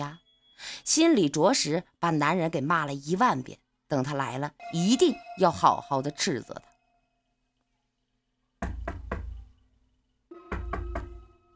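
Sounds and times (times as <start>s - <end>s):
speech: 0.8s - 6.7s
knocking on a door: 8.6s - 9.5s, 10.5s - 11.4s.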